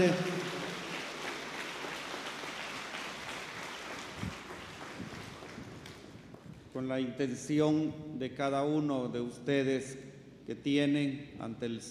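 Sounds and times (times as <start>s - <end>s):
speech: 0.0s - 0.3s, 6.8s - 11.8s
audience applause: 0.0s - 6.1s.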